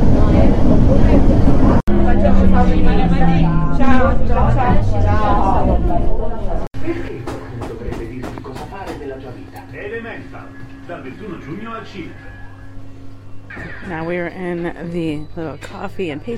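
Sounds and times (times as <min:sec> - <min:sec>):
passenger train to Sorrento: 0:00.0 - 0:12.1
speech: 0:13.9 - 0:16.3.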